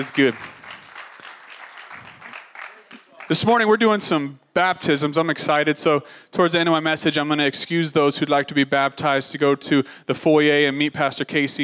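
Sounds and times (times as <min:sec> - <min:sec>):
speech: 0:00.0 - 0:00.6, 0:03.3 - 0:11.6
small group clapping: 0:00.0 - 0:03.5.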